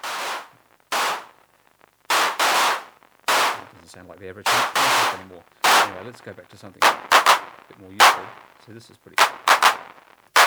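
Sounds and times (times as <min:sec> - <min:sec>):
loud noise blast with reverb: 0:02.1 - 0:08.4, 0:09.2 - 0:10.4
speech: 0:03.9 - 0:09.6.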